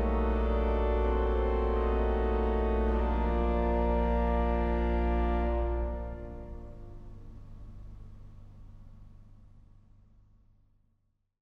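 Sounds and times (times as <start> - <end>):
organ prelude: 0.0 - 7.3.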